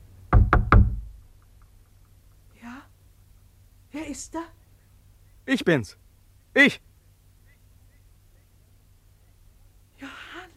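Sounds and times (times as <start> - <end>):
hand knocking on wooden window shutters on a May night: 0.3 - 1.2
speech: 4.0 - 4.6, 5.5 - 6.0, 6.6 - 6.9.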